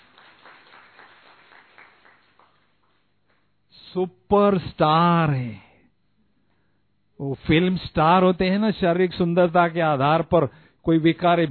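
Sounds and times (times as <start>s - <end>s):
crowd applauding with steady dense clapping: 0.0s - 3.5s
speech: 3.9s - 5.6s, 7.2s - 11.4s.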